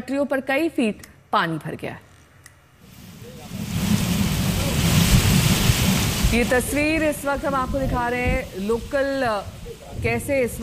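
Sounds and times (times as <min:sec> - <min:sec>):
speech: 0:00.0 - 0:02.1, 0:06.3 - 0:10.6
heavy rain: 0:02.8 - 0:10.6
thunder: 0:02.9 - 0:10.6.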